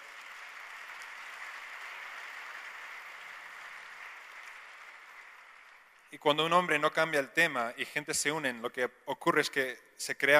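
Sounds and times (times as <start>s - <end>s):
audience applause: 0.0s - 6.1s
speech: 6.1s - 10.3s.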